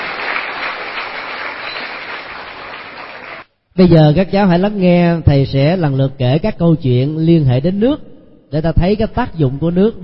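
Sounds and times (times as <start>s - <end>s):
children applauding: 0.0s - 3.5s
speech: 3.8s - 10.0s.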